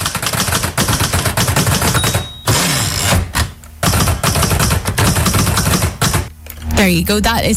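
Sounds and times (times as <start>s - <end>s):
typing on an old-fashioned machine: 0.0s - 3.2s, 3.8s - 6.3s
speech: 6.8s - 7.5s.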